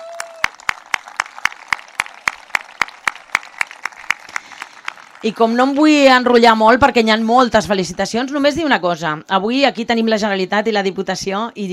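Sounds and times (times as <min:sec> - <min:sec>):
sharp rhythmic claps: 0:00.0 - 0:06.1
audience applause: 0:00.0 - 0:06.2
speech: 0:05.2 - 0:11.7.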